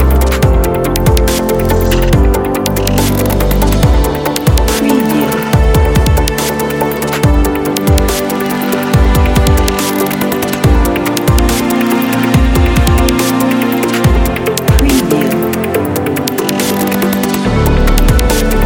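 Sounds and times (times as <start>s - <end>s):
futuristic technology sound: 0.0s - 18.6s.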